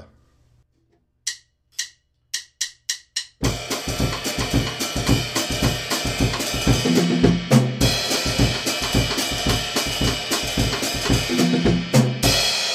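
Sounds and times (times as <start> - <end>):
samba music: 3.4 - 12.6.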